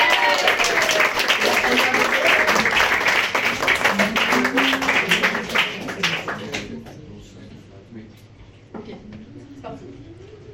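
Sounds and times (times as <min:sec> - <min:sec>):
audience applause: 0:00.0 - 0:06.8.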